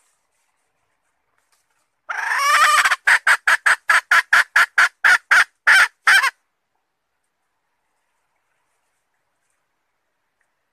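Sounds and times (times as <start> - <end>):
Red junglefowl hen cackling: 2.1 - 6.4.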